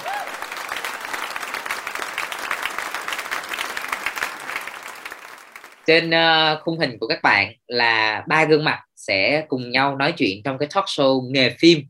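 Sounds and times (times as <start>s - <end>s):
audience applause welcoming a guest: 0.0s - 5.9s
speech: 5.9s - 11.8s.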